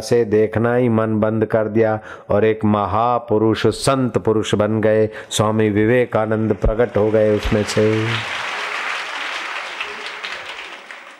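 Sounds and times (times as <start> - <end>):
speech: 0.0 - 8.5
crowd clapping: 6.2 - 11.1.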